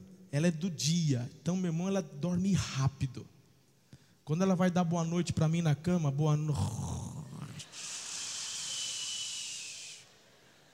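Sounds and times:
speech: 0.3s - 3.4s, 4.3s - 6.9s
person imitating a whistling snore: 7.3s - 10.1s.

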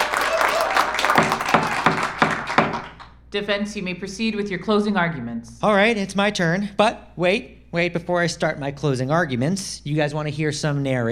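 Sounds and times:
audience round of applause for a jury: 0.0s - 3.2s
speech: 3.3s - 11.1s.

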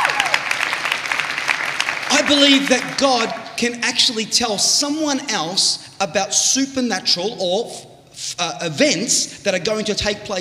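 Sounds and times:
audience applause: 0.0s - 3.8s
speech: 2.3s - 10.3s.

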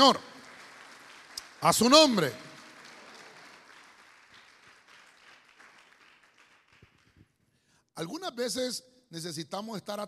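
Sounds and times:
speech: 0.0s - 0.3s, 1.6s - 2.5s, 8.0s - 10.0s
church audience clapping: 0.0s - 7.6s.

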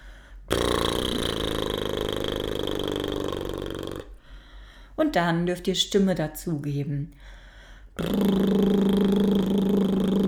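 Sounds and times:
voiced lip trill: 0.5s - 4.2s, 8.0s - 10.2s
speech: 5.0s - 7.4s, 8.0s - 9.0s.

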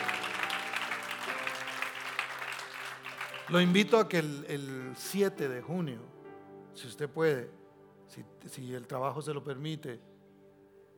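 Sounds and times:
loud audience applause: 0.0s - 4.2s
speech: 3.5s - 6.2s, 6.8s - 10.1s.

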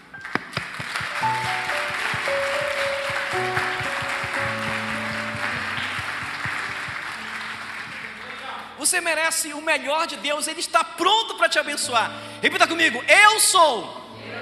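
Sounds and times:
audience applause: 0.2s - 8.7s
speech: 8.9s - 14.0s.

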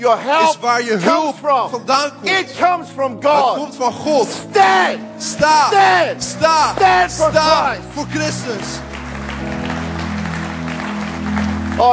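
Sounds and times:
speech: 0.0s - 8.9s, 11.8s - 11.9s
audience applause: 6.5s - 11.9s.

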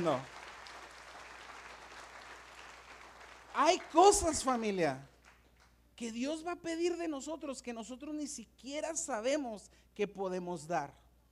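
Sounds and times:
speech: 0.0s - 0.4s, 3.6s - 5.1s, 6.0s - 11.0s
audience applause: 0.0s - 5.4s.

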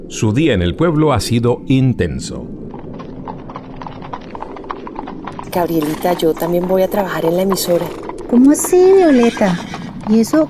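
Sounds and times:
speech: 0.1s - 2.6s, 5.5s - 10.4s
two horses' hooves clip-clopping over grassy ground: 2.6s - 10.4s.

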